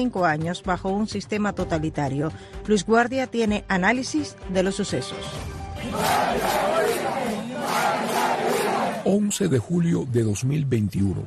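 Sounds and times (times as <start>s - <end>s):
speech: 0.0s - 7.0s, 9.1s - 11.2s
large crowd of protesters chanting a slogan in unison: 5.8s - 9.1s.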